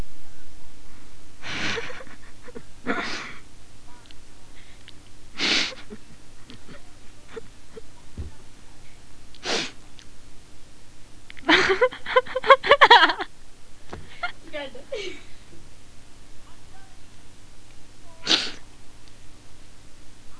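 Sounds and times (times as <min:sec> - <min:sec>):
bout of laughter: 0:01.4 - 0:03.4, 0:11.4 - 0:13.3, 0:14.1 - 0:15.4.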